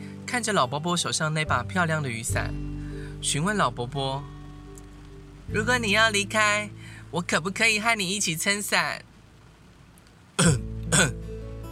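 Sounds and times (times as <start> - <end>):
speech: 0.3 - 4.4, 5.5 - 9.1, 10.4 - 11.2
old woman dry coughing: 10.4 - 11.2.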